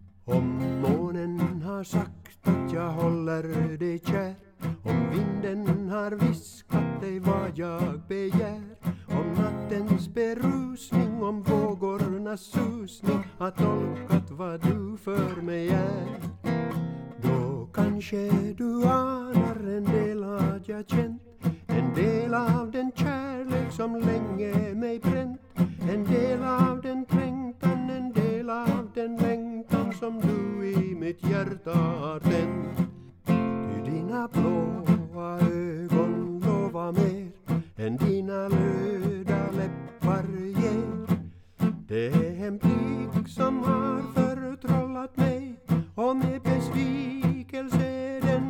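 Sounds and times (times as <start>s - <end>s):
tenor singing: 0.3s - 48.4s.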